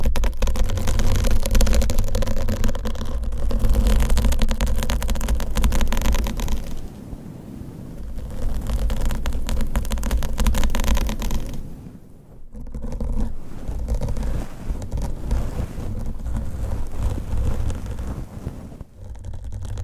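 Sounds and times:
long nails scratching and rubbing over a microphone cover: 0:00.0 - 0:07.0, 0:08.0 - 0:19.8
heavy low rumble: 0:08.0 - 0:19.0.

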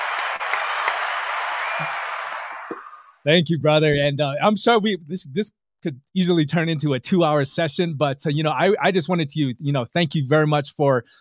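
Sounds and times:
round of applause: 0:00.0 - 0:03.1
speech: 0:01.8 - 0:02.0, 0:03.2 - 0:11.1.

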